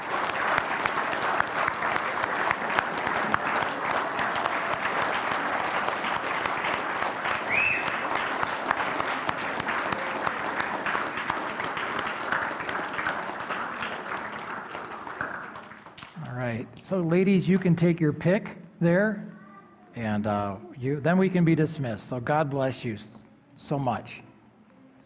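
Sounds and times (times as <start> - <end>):
audience applauding: 0.0 - 16.5
speech: 16.9 - 19.3, 20.0 - 24.2.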